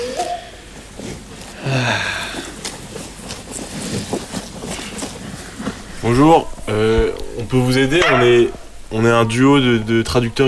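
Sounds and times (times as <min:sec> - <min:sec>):
wind blowing: 0:05.4 - 0:10.4
speech: 0:06.0 - 0:10.4.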